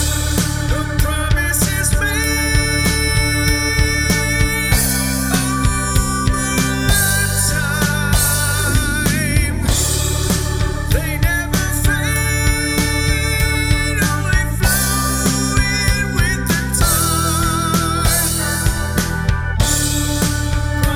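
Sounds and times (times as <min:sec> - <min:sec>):
bass: 0:00.0 - 0:20.9
keyboards: 0:00.0 - 0:20.9.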